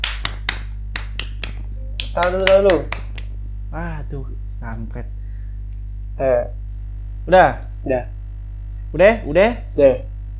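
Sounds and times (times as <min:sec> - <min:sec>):
scout-style rhythmic clapping: 0:00.0 - 0:03.4
speech: 0:02.2 - 0:03.0, 0:03.7 - 0:05.2, 0:06.2 - 0:06.6, 0:07.2 - 0:08.2, 0:08.9 - 0:10.1.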